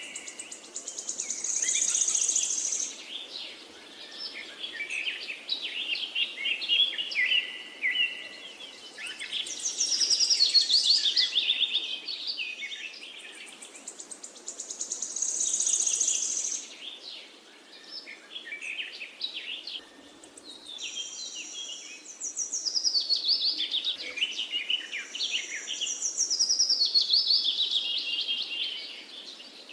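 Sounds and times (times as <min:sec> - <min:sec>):
birds singing and chirping in the forest: 0:00.0 - 0:29.7.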